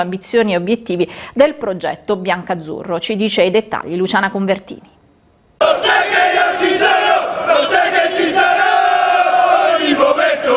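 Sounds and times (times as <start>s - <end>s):
speech: 0.0s - 5.0s
football ultras chanting: 5.6s - 10.5s.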